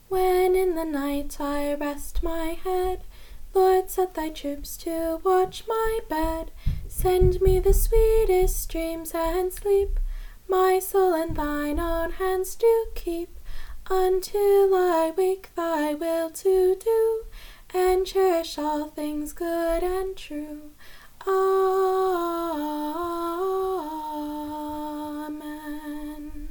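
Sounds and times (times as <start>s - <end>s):
children's song: 0.0s - 26.4s.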